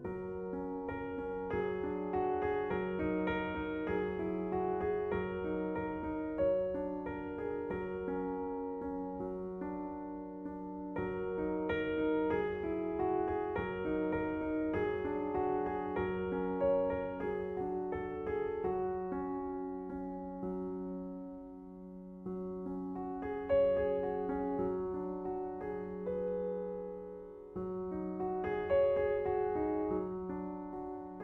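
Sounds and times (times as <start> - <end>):
piano piece on Garritan CFX Yamaha piano: 0.0 - 31.2.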